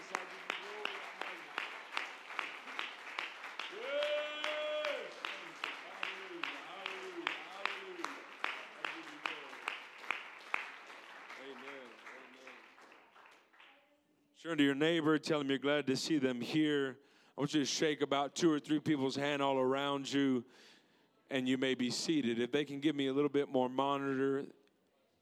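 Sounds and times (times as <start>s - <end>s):
audience clapping hands: 0.0s - 13.9s
speech: 14.4s - 20.7s, 21.3s - 24.6s.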